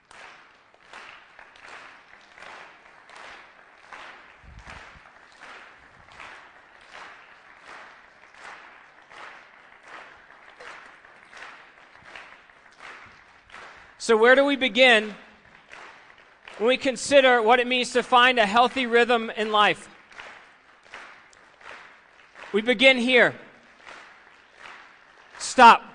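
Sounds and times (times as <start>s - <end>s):
audience clapping: 0.0s - 25.9s
speech: 14.1s - 15.2s, 16.6s - 19.9s, 22.5s - 23.4s, 25.6s - 25.9s.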